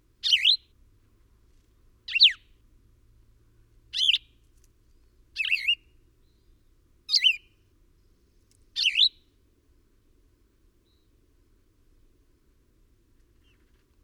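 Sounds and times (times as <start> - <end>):
bird chirping: 0.2 - 0.7, 2.1 - 2.5, 3.9 - 4.4, 5.4 - 7.6, 8.8 - 9.3.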